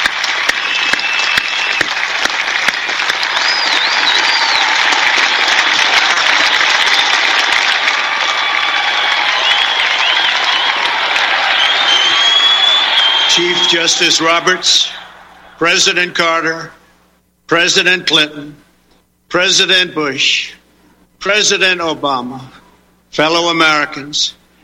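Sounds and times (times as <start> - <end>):
large crowd applauding and cheering: 0.0 - 16.0
speech: 13.4 - 15.0, 15.6 - 16.8, 17.5 - 18.6, 19.3 - 20.6, 21.2 - 24.4.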